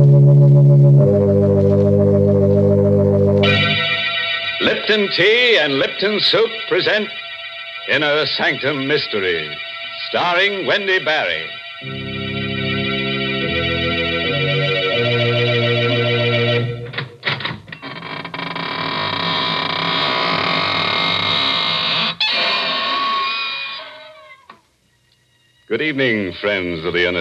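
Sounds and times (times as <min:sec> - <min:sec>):
organ chords: 0:00.0 - 0:17.7
speech: 0:04.9 - 0:07.2, 0:07.9 - 0:12.0, 0:25.8 - 0:27.1
squeaking door creaking and groaning: 0:17.0 - 0:24.6.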